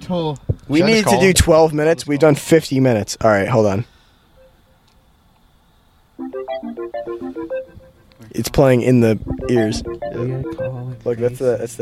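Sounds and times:
speech: 0.1 - 3.9, 6.6 - 11.8
Snapchat call ringtone: 6.2 - 8.1, 9.3 - 11.1.

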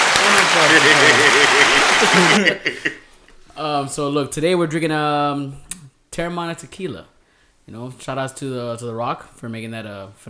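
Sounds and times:
round of applause: 0.0 - 2.4
laughter: 0.0 - 3.1
speech: 0.5 - 3.0, 3.6 - 7.1, 7.7 - 10.2.

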